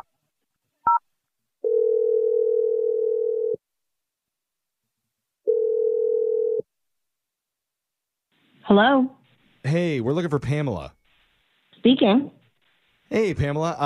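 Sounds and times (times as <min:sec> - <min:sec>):
long steady low-pitched telephone tones while placing a call: 0:01.6 - 0:03.6, 0:05.4 - 0:06.7
speech: 0:08.7 - 0:11.0, 0:11.8 - 0:12.4, 0:13.1 - 0:13.8.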